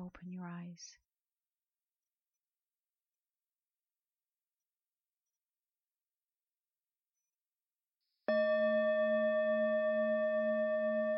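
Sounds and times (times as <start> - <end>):
speech: 0.0 - 1.1
meditation bell: 8.3 - 11.1.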